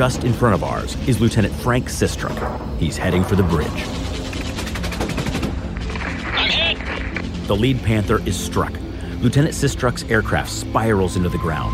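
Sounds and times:
speech: 0.0s - 4.1s, 7.5s - 11.7s
anti-aircraft gunfire: 2.3s - 6.2s.

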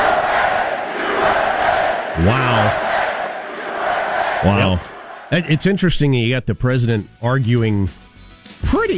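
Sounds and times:
arena crowd cheering: 0.0s - 5.9s
speech: 2.2s - 2.9s, 4.4s - 8.0s, 8.6s - 8.9s.

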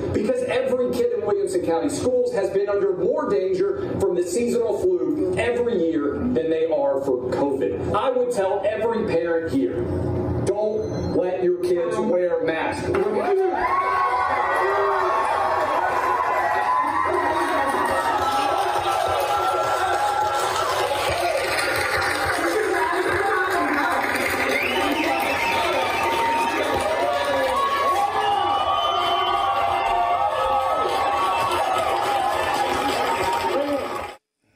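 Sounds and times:
speech: 0.2s - 14.1s
crowd cheering and shouting at a meeting: 12.9s - 34.2s.

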